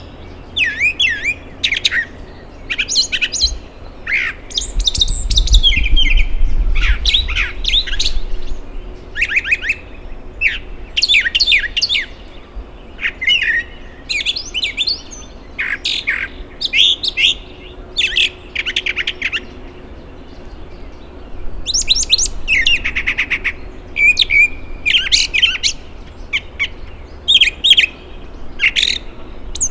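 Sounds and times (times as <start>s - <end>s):
brown thrasher song: 0.0s - 29.6s.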